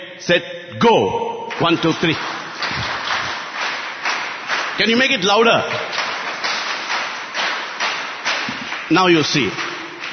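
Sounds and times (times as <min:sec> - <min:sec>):
speech: 0:00.2 - 0:02.8, 0:04.8 - 0:05.9, 0:08.9 - 0:09.6
group clapping in unison: 0:01.5 - 0:10.1.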